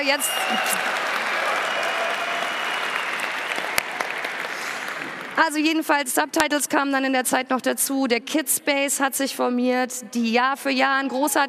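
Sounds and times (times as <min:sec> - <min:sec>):
speech: 0:00.0 - 0:01.2, 0:05.4 - 0:11.4
audience applause: 0:00.0 - 0:05.4.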